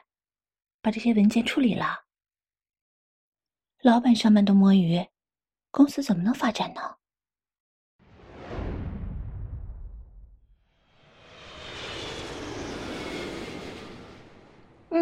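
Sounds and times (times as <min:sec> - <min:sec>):
speech: 0:00.8 - 0:02.0, 0:03.8 - 0:05.1, 0:05.7 - 0:07.0
small private airplane engine roaring: 0:10.8 - 0:14.9.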